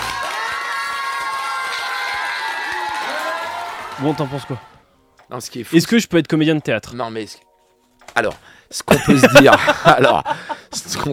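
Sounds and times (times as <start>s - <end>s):
audience applause: 0.0s - 4.8s
speech: 4.0s - 7.5s, 8.2s - 11.1s
laughter: 8.9s - 10.9s.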